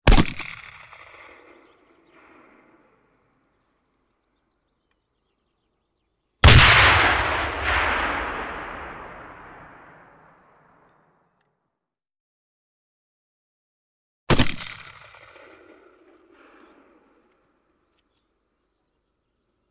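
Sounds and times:
artillery grenade launcher: 6.4s - 10.0s.

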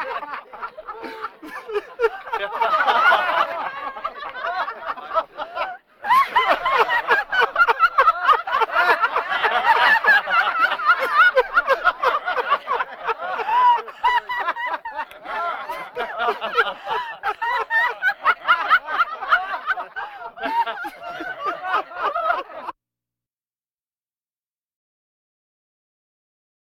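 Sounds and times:
laughter: 0.0s - 22.8s
breathing vocal effects: 20.0s - 20.4s.

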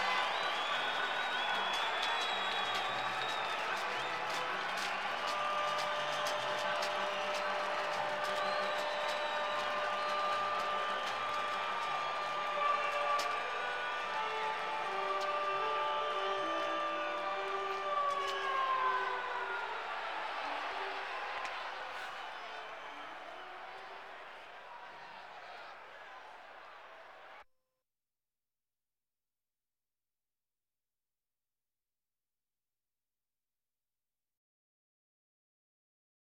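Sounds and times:
sports crowd: 0.0s - 27.5s.

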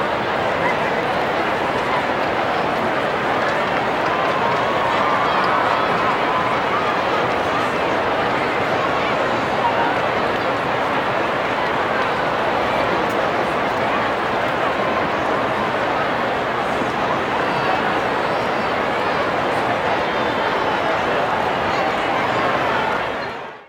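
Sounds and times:
large stadium crowd walla: 0.0s - 23.6s.

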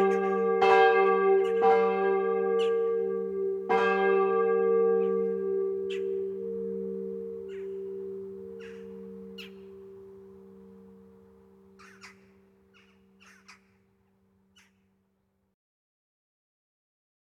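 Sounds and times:
church bells: 0.0s - 12.6s.

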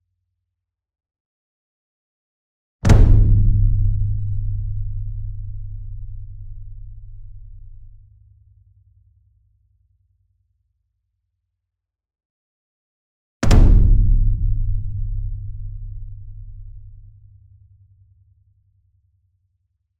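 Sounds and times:
large concert bass drum flam: 2.8s - 8.1s, 13.4s - 17.7s.

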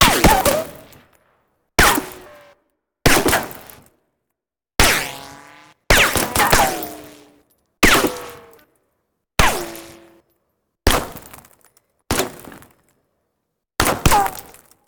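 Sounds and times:
bullet ricochet: 0.0s - 1.0s, 1.8s - 2.5s, 3.1s - 3.7s, 4.8s - 8.6s, 9.4s - 10.2s, 13.8s - 14.6s.

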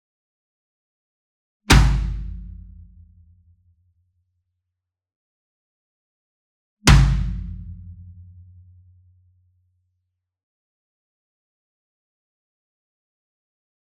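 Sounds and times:
single marching bass drum hit with a whip beater: 1.7s - 3.0s, 6.9s - 8.2s.

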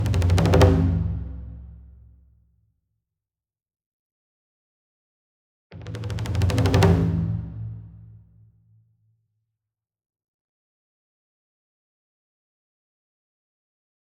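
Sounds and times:
28 inch taiko drum roll with hard beater: 0.0s - 1.9s, 5.8s - 8.0s.

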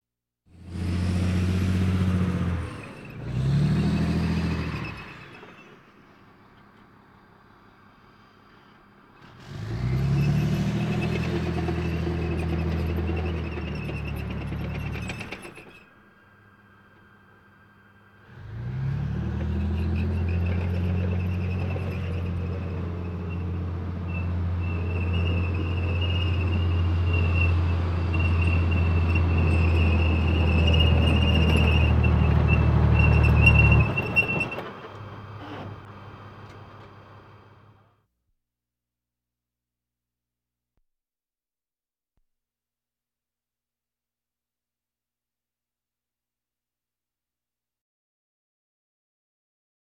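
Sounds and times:
military vehicles: 0.5s - 38.0s.

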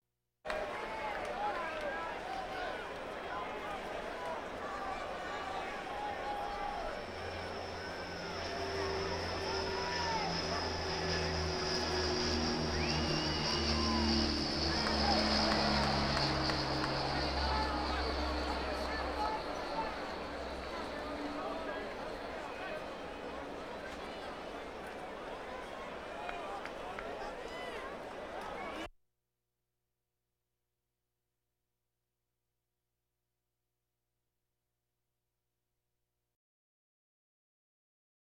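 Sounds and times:
race cars: 0.5s - 28.8s
crowds: 0.5s - 28.9s.

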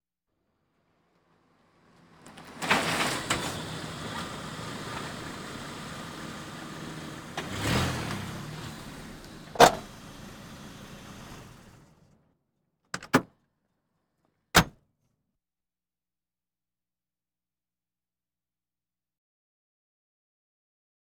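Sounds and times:
various automobiles: 0.6s - 12.3s.

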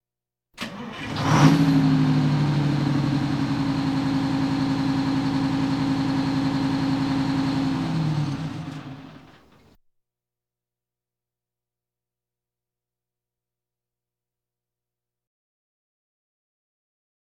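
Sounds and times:
fire engine sirens: 0.6s - 9.4s.

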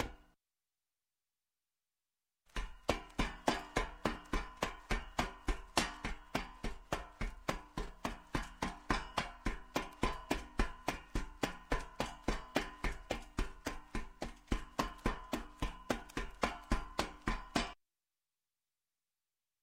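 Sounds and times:
boots slowly climbing metal steps: 2.5s - 17.8s.

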